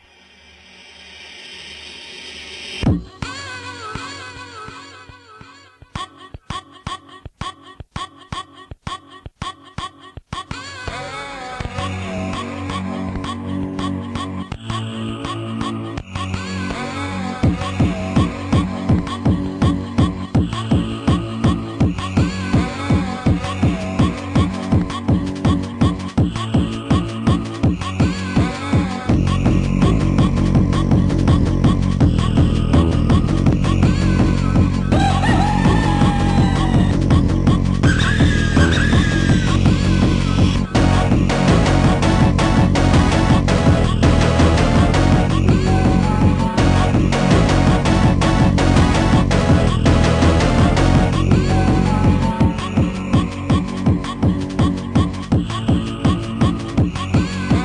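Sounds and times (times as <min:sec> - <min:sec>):
dissonant sampled techno: 0:11.9 - 0:57.6.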